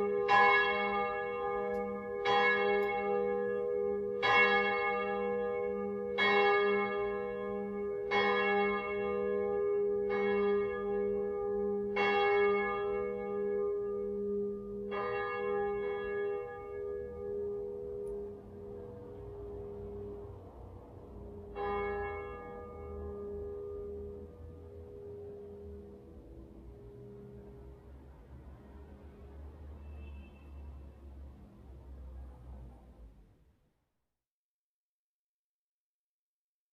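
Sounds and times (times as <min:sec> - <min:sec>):
cathedral bell tuned to G sharp: 0:00.0 - 0:27.6.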